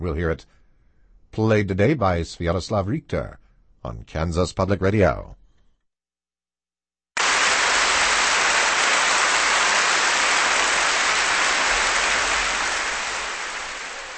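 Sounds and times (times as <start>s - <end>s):
speech: 0.0s - 0.6s, 1.3s - 5.4s
audience applause after a piano sonata: 7.2s - 14.1s.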